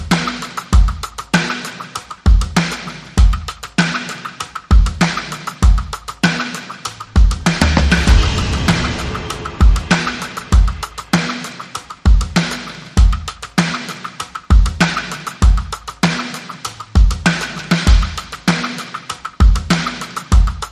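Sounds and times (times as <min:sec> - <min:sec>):
drums: 0:00.0 - 0:20.6
sound effects: 0:07.5 - 0:11.7.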